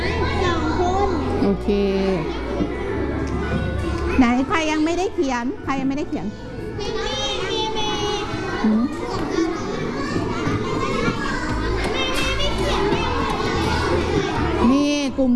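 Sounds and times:
children shouting in a classroom: 0.0 - 1.4, 2.2 - 4.3, 6.4 - 14.7
children's groups talking loudly in a classroom: 0.0 - 15.3
speech: 1.5 - 2.7, 4.2 - 6.5, 8.6 - 8.8, 15.1 - 15.3.

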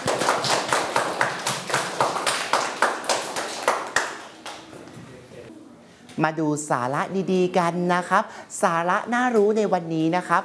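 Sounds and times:
group of students clapping: 0.0 - 4.7
speech: 6.2 - 10.4.

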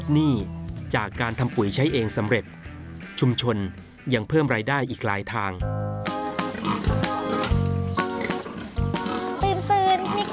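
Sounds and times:
speech: 0.1 - 2.6, 3.2 - 5.9
droning animal noise: 6.2 - 10.3
pigs grunting in a community farm pen: 6.4 - 10.3.

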